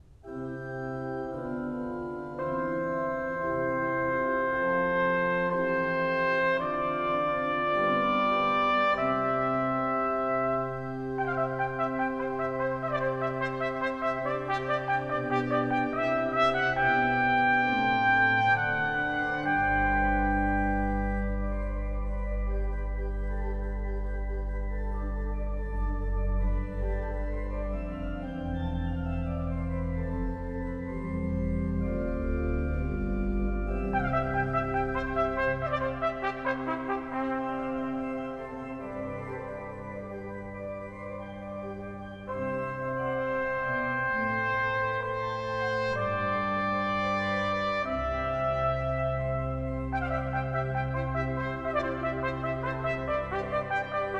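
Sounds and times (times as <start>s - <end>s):
organ in a symphony: 0.0s - 54.1s
trumpet in a symphony: 1.3s - 54.1s.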